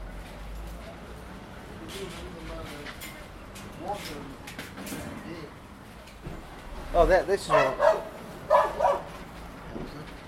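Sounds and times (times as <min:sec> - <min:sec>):
speech: 0:03.8 - 0:05.6, 0:06.9 - 0:08.0
dog barking: 0:07.5 - 0:09.2.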